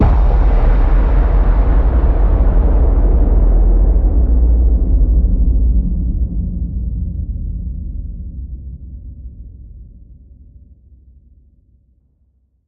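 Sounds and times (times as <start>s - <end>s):
low hit: 0.0s - 7.2s.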